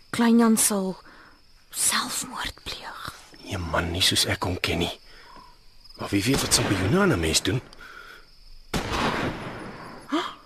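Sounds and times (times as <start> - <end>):
speech: 0.1 - 1.1, 1.7 - 2.6, 3.5 - 5.0, 6.0 - 7.8
gunshots: 6.3 - 7.7, 8.7 - 10.0.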